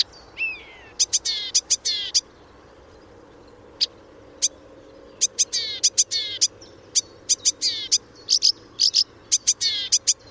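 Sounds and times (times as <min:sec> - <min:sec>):
Blyth's reed warbler song: 0:00.0 - 0:10.2.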